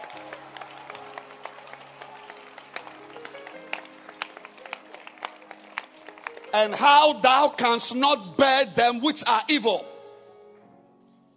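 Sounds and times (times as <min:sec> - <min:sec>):
audience clapping hands: 0:00.0 - 0:07.8
speech: 0:06.6 - 0:09.9.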